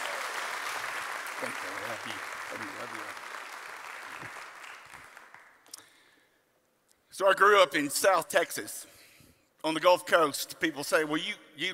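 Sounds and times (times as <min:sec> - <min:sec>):
church audience applauding to welcome Pastor Toby Slough: 0:00.0 - 0:05.9
speech: 0:01.4 - 0:03.3, 0:07.2 - 0:09.0, 0:09.6 - 0:11.7.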